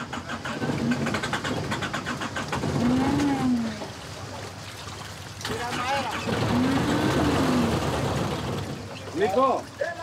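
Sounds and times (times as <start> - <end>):
fishing boat engine failing to start: 0.0 - 3.7, 5.5 - 9.2
speech: 9.2 - 9.8.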